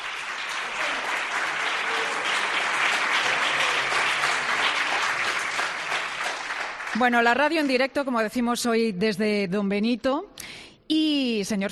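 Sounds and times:
students applauding: 0.0s - 7.2s
speech: 7.0s - 10.3s, 10.9s - 11.7s.

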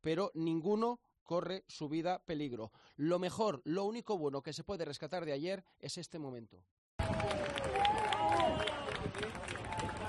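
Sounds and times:
speech: 0.0s - 7.8s, 8.4s - 10.0s
applause for firefighters after a rescue: 7.0s - 10.0s.

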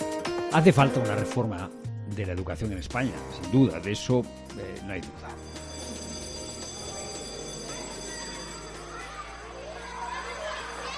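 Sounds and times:
speech: 0.5s - 5.6s
school class bell ringing: 5.2s - 10.9s.

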